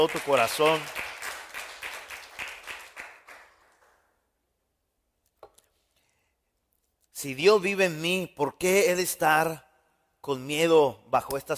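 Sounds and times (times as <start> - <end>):
speech: 0.0 - 1.0, 7.2 - 11.5
audience applauding: 0.0 - 4.0.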